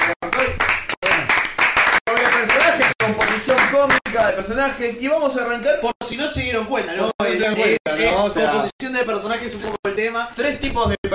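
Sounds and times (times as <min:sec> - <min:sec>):
many hands clapping: 0:00.0 - 0:04.4
speech: 0:03.8 - 0:11.1.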